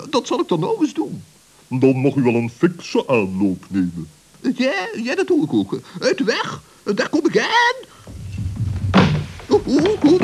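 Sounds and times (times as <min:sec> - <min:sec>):
speech: 0:00.1 - 0:08.0, 0:09.7 - 0:10.2
person slipping and falling on a slippery staircase: 0:07.9 - 0:10.2.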